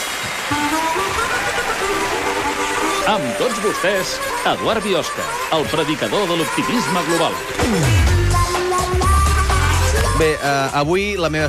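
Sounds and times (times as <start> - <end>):
audience applause: 0.0 - 8.9
speech: 3.1 - 8.1, 10.2 - 11.4.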